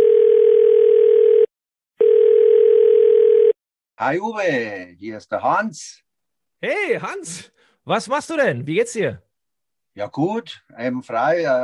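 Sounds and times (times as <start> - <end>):
telephone call tone: 0.0 - 3.6
speech: 4.0 - 6.0, 6.6 - 9.2, 10.0 - 11.6.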